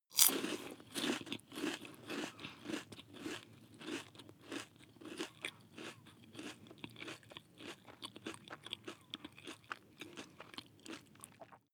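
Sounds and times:
chewing one piece of biscuit: 0:00.1 - 0:11.7.

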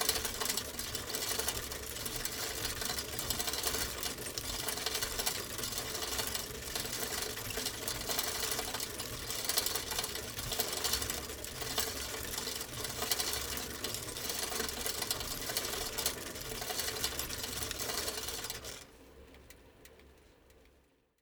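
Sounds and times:
rickety bicycle pedal turning slowly: 0:00.0 - 0:20.2.

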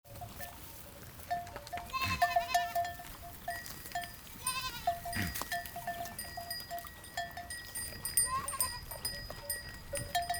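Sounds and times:
goat bleating: 0:00.1 - 0:06.9, 0:07.7 - 0:09.6
bells ringing: 0:01.3 - 0:10.3.

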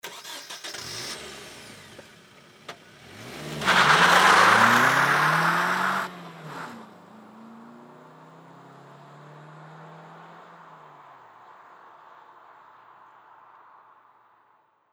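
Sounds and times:
Nissan car starting and driving off: 0:00.0 - 0:11.0.

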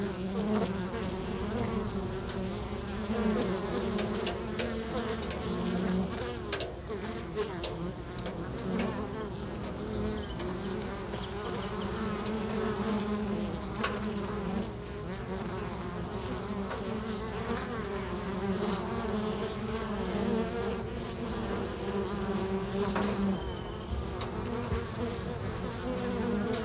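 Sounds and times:
bees buzzing: 0:00.0 - 0:26.6
soft ticks: 0:04.0 - 0:09.0, 0:26.4 - 0:26.6.

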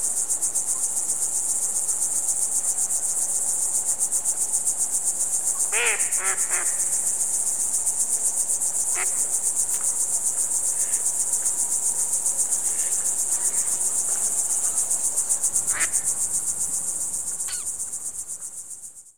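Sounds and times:
cricket chirping: 0:00.0 - 0:19.1.

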